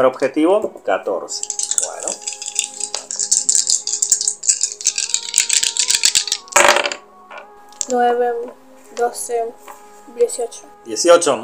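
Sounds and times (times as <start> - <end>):
speech: 0.0 - 2.2, 7.9 - 11.4
dice being rolled: 1.4 - 8.0.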